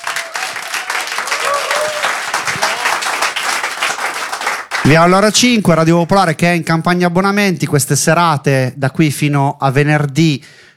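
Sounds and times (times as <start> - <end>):
audience applause: 0.0 - 5.0
speech: 4.9 - 10.6.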